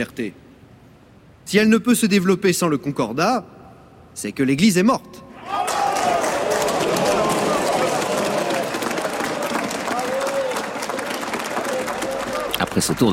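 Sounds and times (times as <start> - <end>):
speech: 0.0 - 0.4, 1.5 - 3.6, 4.2 - 5.2, 12.8 - 13.1
applause from a parliamentary assembly: 5.6 - 13.1.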